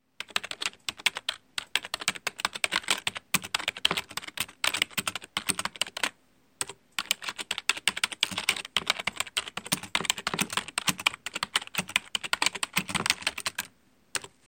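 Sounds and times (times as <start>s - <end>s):
typing: 0.2s - 14.4s.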